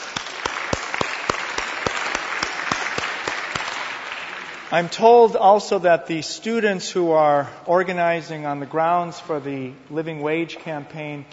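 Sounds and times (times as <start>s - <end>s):
audience applause: 0.0s - 5.4s
speech: 4.7s - 11.3s.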